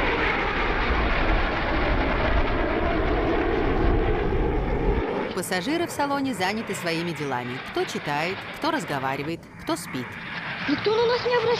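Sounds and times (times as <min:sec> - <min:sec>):
airplane in flight roaring drone: 0:00.0 - 0:11.5
speech: 0:05.4 - 0:11.5.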